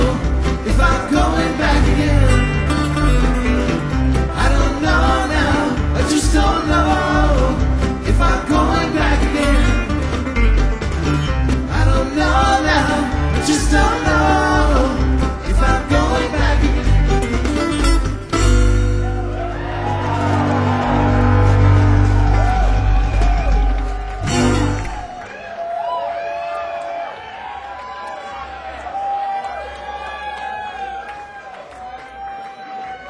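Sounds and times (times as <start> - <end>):
music: 0.0 - 25.2
large concert crowd cheering: 0.0 - 33.0.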